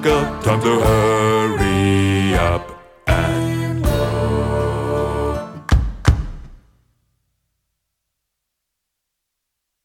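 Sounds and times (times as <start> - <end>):
bass: 0.0 - 6.6.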